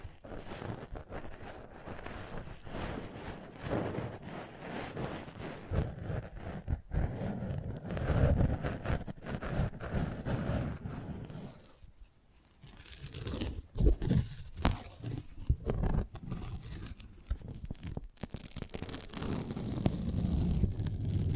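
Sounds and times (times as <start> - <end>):
handling and rubbing a microphone: 0.0 - 21.3.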